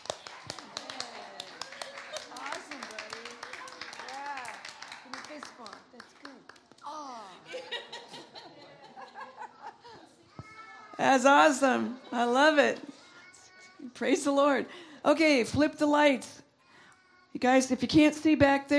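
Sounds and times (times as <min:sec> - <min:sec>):
rhythmic hand clapping: 0:00.0 - 0:06.9
several voices chattering and laughing: 0:06.8 - 0:13.8
speech: 0:11.0 - 0:12.9, 0:14.0 - 0:16.4, 0:17.4 - 0:18.7.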